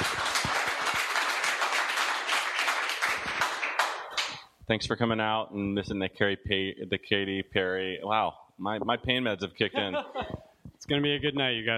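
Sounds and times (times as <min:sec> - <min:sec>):
audience applause: 0:00.0 - 0:04.4
speech: 0:04.7 - 0:11.7
laughter: 0:09.7 - 0:10.5.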